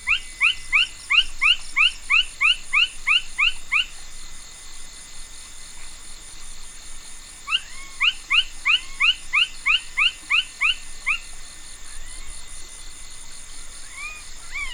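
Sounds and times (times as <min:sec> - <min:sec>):
Side-spotted frog Pulchrana laterimaculata calling in upward-sweeping chirps: 0:00.0 - 0:04.0, 0:07.5 - 0:12.4, 0:13.6 - 0:14.7.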